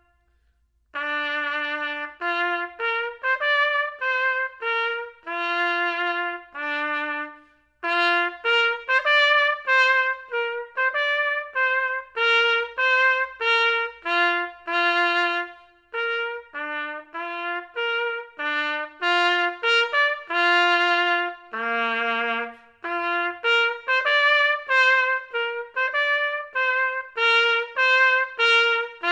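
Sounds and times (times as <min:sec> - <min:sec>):
trumpet playing a minuet: 0:00.0 - 0:29.0.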